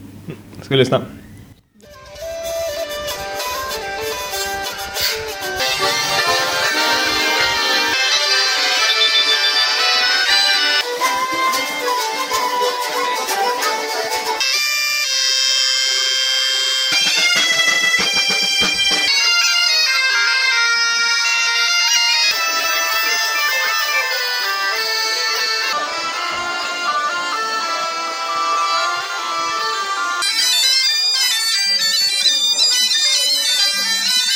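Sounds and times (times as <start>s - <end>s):
speech: 0.3s - 1.2s
bagpipe music at a festival: 1.9s - 34.3s.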